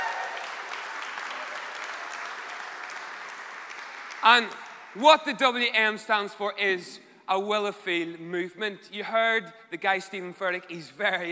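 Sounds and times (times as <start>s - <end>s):
faint cheers: 0.0s - 3.0s
crowd applauding: 0.0s - 5.0s
speech: 4.2s - 11.3s.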